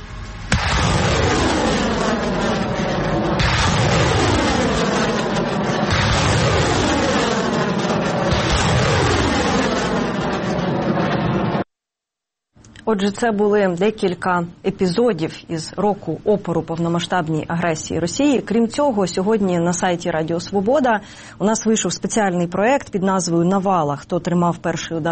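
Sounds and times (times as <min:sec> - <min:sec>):
multiple rocket launcher firing a salvo: 0:00.0 - 0:11.6
speech: 0:12.9 - 0:25.1.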